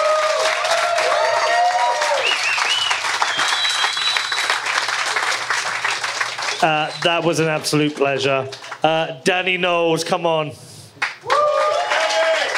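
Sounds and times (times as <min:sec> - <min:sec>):
audience applause at a live debate event in Miami: 0:00.0 - 0:09.1, 0:11.0 - 0:12.5
audience whistles: 0:02.1 - 0:04.6
speech: 0:06.6 - 0:10.7.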